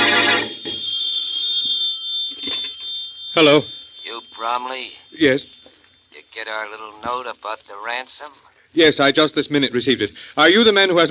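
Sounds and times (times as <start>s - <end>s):
telephone ringing: 0.0s - 8.3s
speech: 3.4s - 3.8s, 4.4s - 5.7s, 6.3s - 11.0s.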